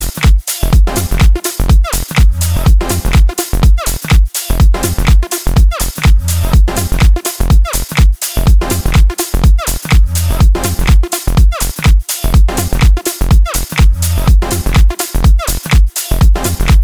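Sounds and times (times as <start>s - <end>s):
electro mix: 0.0s - 16.8s.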